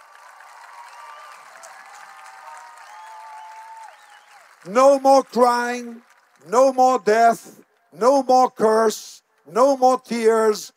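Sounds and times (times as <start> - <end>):
audience applauding: 0.0 - 7.1
speech: 4.6 - 10.7.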